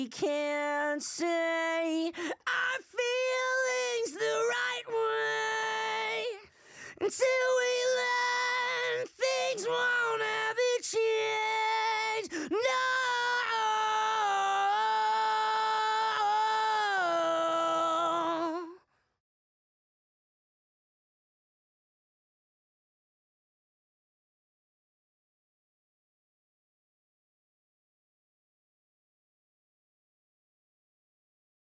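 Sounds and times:
main vocals: 0.0 - 18.9.

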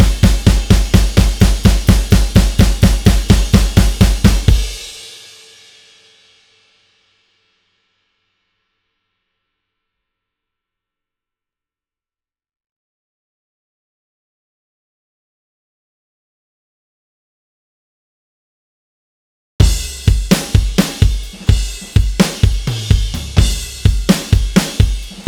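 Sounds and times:
drums: 0.0 - 7.4, 19.6 - 25.2.

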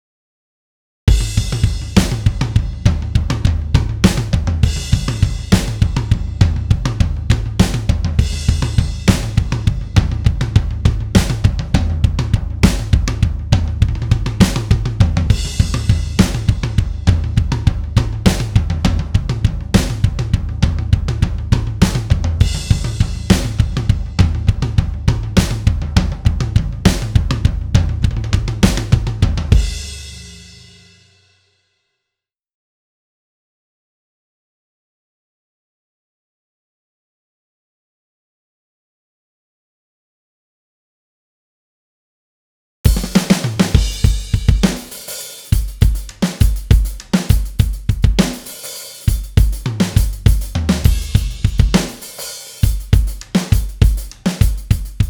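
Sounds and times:
drums: 1.1 - 31.4, 42.8 - 55.0.

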